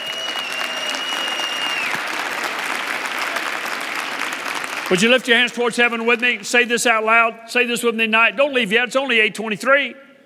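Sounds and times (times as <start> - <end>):
audience hand clap: 0.0 - 7.2
speech: 4.9 - 10.0.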